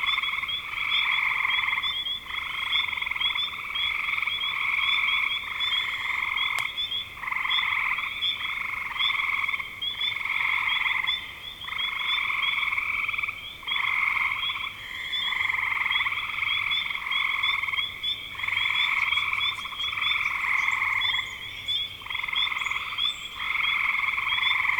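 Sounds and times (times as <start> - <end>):
frog chorus of pulsed trills: 0.0 - 24.7.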